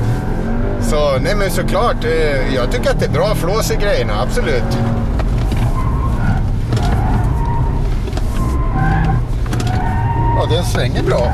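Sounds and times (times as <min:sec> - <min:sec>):
car engine roaring during hard launch: 0:00.0 - 0:11.3
car tyres screeching while skidding: 0:00.8 - 0:11.3
speech: 0:00.9 - 0:05.1, 0:10.4 - 0:11.3.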